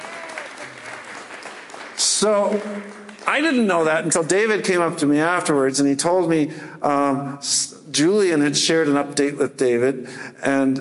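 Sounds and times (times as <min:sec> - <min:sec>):
audience clapping: 0:00.0 - 0:04.2
speech: 0:02.0 - 0:10.7.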